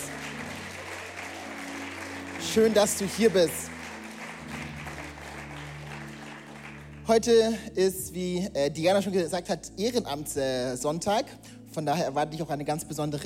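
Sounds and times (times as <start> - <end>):
audience applauding: 0.0 - 7.3
speech: 2.5 - 3.7, 7.1 - 13.2.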